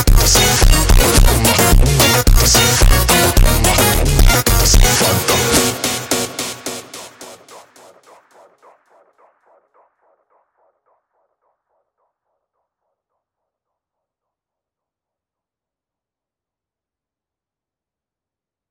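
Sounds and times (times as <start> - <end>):
super slowed montagem music: 0.0 - 8.0.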